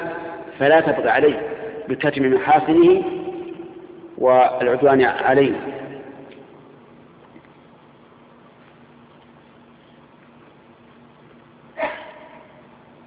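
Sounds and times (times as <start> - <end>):
low steady hum: 0.0 - 13.0
speech: 0.6 - 3.2, 4.2 - 5.8
sneeze: 11.8 - 12.6.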